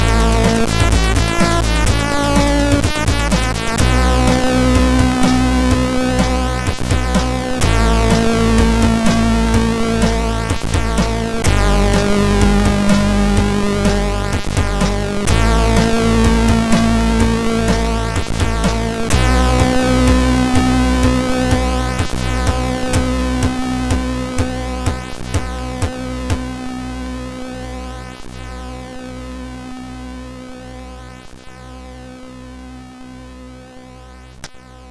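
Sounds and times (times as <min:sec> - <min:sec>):
chiptune music from a MOS6581R4 sound chip: 0:00.0 - 0:25.5.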